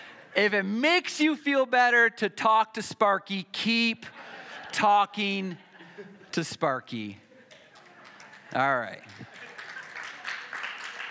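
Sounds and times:
speech: 0.4 - 7.2, 8.5 - 9.3
audience clapping: 7.5 - 11.0.

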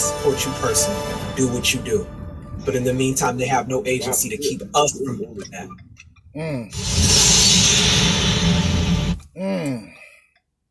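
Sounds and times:
road and wind noise inside a moving car: 0.2 - 6.3
speech: 0.2 - 8.6, 9.4 - 10.0.

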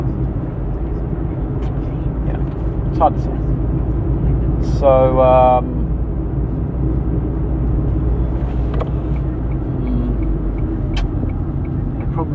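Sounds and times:
car driving along a road: 0.0 - 12.3
speech: 3.0 - 3.6, 4.6 - 5.7.

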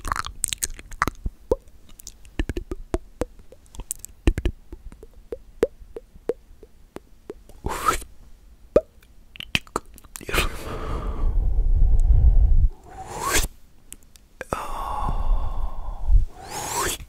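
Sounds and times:
wet mouth clicks and plops: 0.0 - 8.1, 8.8 - 10.4
breathy blowing and rushing: 10.3 - 13.6, 14.5 - 17.0.

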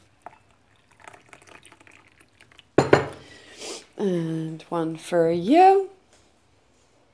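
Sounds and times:
coffee pouring: 0.0 - 3.4
speech: 4.0 - 5.9.

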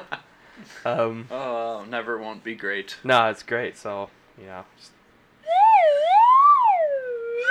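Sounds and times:
speech: 0.8 - 5.0
slide whistle: 5.4 - 7.4.

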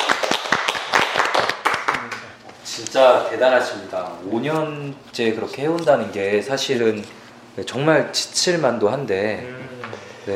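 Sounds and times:
clapping: 0.0 - 2.3
speech: 2.8 - 10.3.

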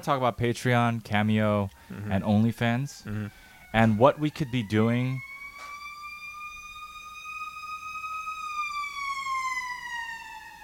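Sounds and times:
speech: 0.0 - 5.3
fire truck siren passing by: 2.2 - 10.6.

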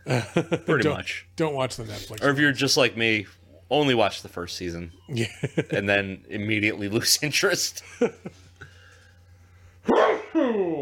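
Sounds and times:
laughter: 0.0 - 0.8, 5.1 - 5.9, 7.8 - 8.5
speech: 0.1 - 8.4
sneeze: 9.9 - 10.6.

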